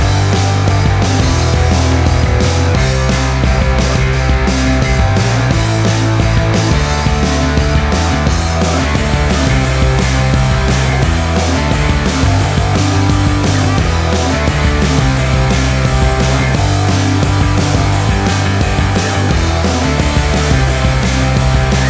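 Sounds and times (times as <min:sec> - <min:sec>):
big and bold pop punk rock music: 0:00.0 - 0:21.8.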